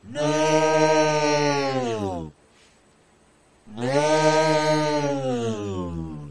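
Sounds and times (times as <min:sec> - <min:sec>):
creature yelling: 0:00.0 - 0:02.3, 0:03.7 - 0:06.3.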